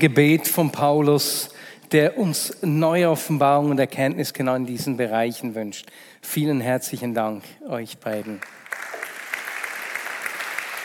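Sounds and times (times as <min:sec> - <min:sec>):
speech: 0:00.0 - 0:09.0
audience applause: 0:08.2 - 0:10.8.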